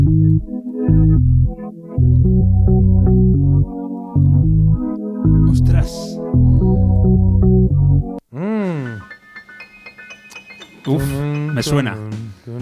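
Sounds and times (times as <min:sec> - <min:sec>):
isolated bass line from a disco-style dance song: 0:00.0 - 0:08.2
person exclaiming: 0:08.3 - 0:09.1
speech: 0:11.6 - 0:12.2.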